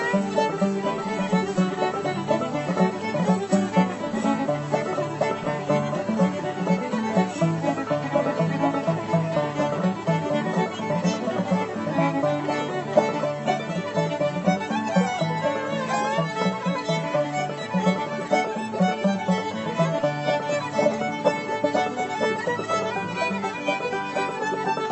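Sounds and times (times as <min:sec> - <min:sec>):
fiddle playing in the key of D: 0:00.0 - 0:24.8.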